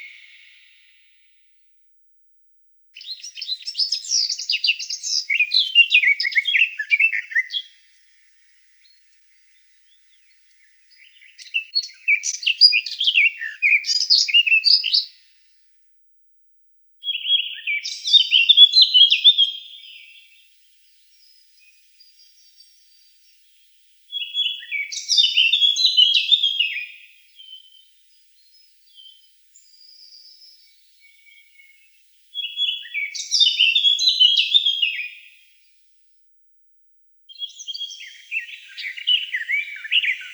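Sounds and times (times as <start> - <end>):
Eurasian blackcap song: 2.9 - 7.7, 8.8 - 15.2, 17.1 - 20.4, 21.0 - 27.9, 28.5 - 35.3, 37.3 - 40.3.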